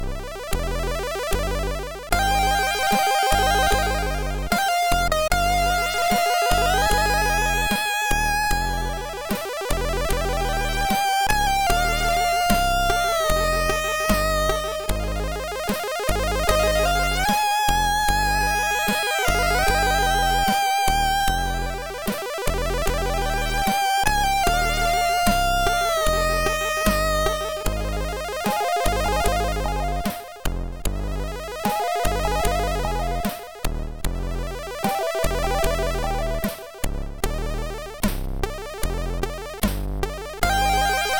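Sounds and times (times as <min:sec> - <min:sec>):
MOS 6581R2 SID chip music: 0:00.1 - 0:41.1.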